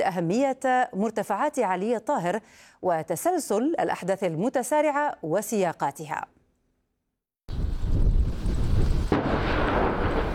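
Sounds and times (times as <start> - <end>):
speech: 0.0 - 6.4
artillery fire and explosions: 7.5 - 10.3
sharp loud blast: 7.5 - 10.3.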